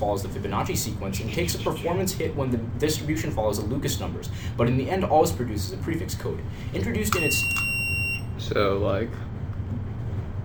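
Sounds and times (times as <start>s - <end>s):
speech: 0.0s - 7.7s, 8.4s - 9.3s
low hum: 0.0s - 10.4s
electronic quiz buzzer beep: 7.1s - 8.4s.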